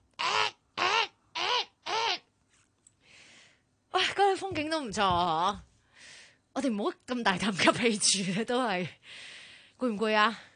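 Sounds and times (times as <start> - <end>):
crow cawing while flying past in remote wild hills: 0.2 - 2.3
speech: 4.4 - 5.7, 6.6 - 10.5.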